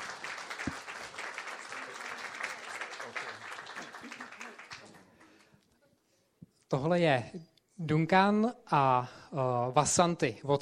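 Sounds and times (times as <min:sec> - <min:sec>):
audience applause welcoming guests: 0:00.0 - 0:05.5
speech: 0:06.7 - 0:10.5.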